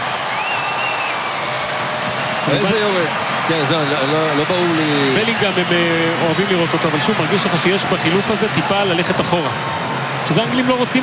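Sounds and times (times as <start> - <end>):
stadium crowd cheering and booing: 0.0 - 11.0
shrill sustained whistle: 0.3 - 1.3
speech: 2.5 - 11.0.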